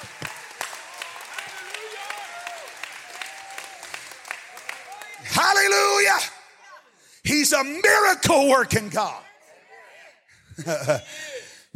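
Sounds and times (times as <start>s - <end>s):
audience clapping hands: 0.0s - 6.0s
speech: 5.2s - 6.3s, 7.4s - 9.3s, 10.6s - 11.7s
laughter: 10.3s - 11.4s.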